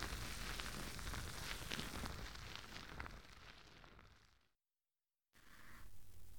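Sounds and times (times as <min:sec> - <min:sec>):
foam bubbles fizzing near the ear: 0:00.0 - 0:04.3.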